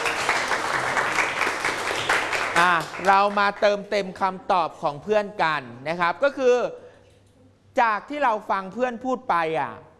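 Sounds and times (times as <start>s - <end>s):
classroom group of people clapping: 0.0s - 3.8s
speech: 2.6s - 6.8s, 7.8s - 9.9s.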